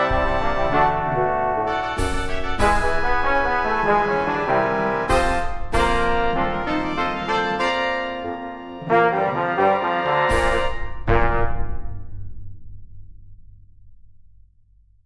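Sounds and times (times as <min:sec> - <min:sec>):
fanfare: 0:00.0 - 0:11.6.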